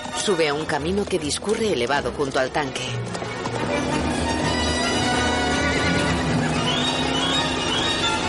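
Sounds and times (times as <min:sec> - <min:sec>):
galloping hooves: 0:00.0 - 0:08.2
speech: 0:00.2 - 0:04.4
horse whinnying loudly: 0:03.7 - 0:08.2.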